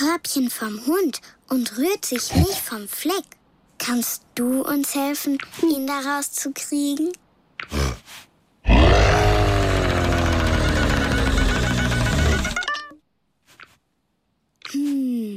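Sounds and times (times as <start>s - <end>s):
speech: 0.2s - 8.2s, 14.7s - 15.3s
lion roaring: 8.6s - 12.6s.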